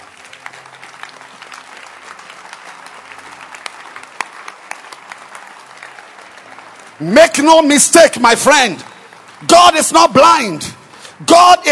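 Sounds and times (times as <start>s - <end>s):
sharp individual claps: 0.0s - 7.4s
church congregation applauding after a sermon: 0.0s - 11.6s
speech: 7.0s - 11.6s.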